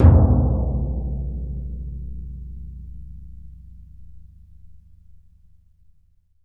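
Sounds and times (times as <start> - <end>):
Synclavier percussion in C sharp: 0.0 - 2.2.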